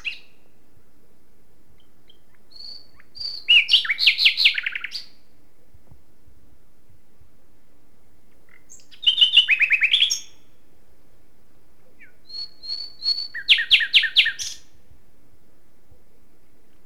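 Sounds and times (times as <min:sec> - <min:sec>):
common nightingale singing: 0:00.0 - 0:05.7, 0:08.3 - 0:10.6, 0:11.6 - 0:14.8.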